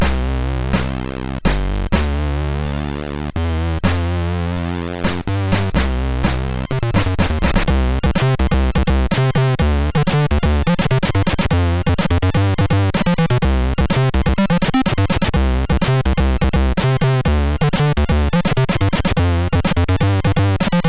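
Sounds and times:
chiptune loader music on MOS6581R4 SID chip: 0.0s - 20.8s.

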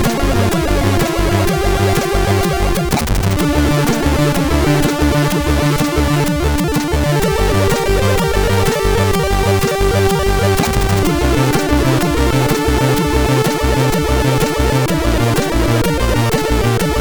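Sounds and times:
Arabian-style music on a SID CSG8580R5 chip: 0.0s - 16.9s.

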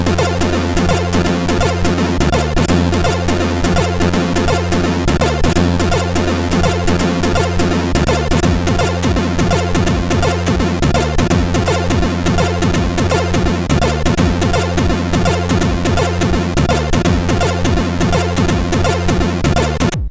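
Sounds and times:
SID chip jig on CSG 8580R5: 0.0s - 20.0s.

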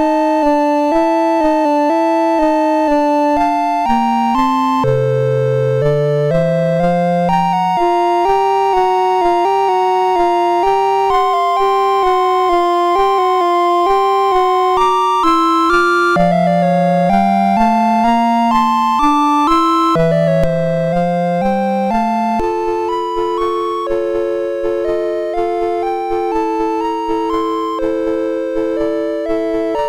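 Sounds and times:
chiptune music on MOS6581R3 sound chip: 0.0s - 29.8s.

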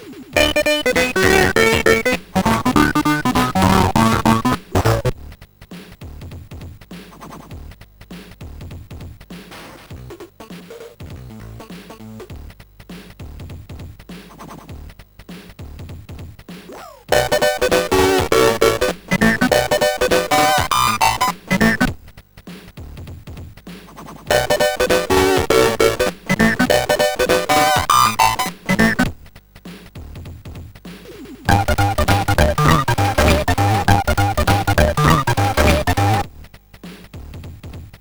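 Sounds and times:
hip hop music on SID CSG8580R5 chip: 0.4s - 5.1s, 17.1s - 22.0s, 24.3s - 29.2s, 31.5s - 36.5s.

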